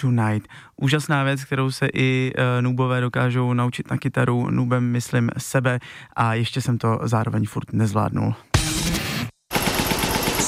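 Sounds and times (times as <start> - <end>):
speech: 0.0 - 8.5
air compressor sputtering and failing: 9.5 - 10.4.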